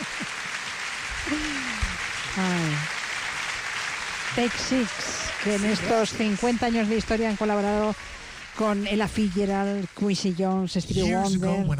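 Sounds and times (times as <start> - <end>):
audience applause: 0.0 - 11.6
voices cheering and calling out: 1.2 - 11.6
speech: 1.3 - 1.7, 2.4 - 3.0, 4.4 - 8.0, 8.6 - 11.7.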